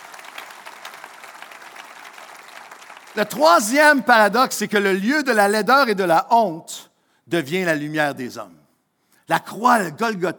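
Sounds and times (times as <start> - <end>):
audience applause: 0.0 - 3.4
speech: 3.2 - 8.6, 9.3 - 10.3.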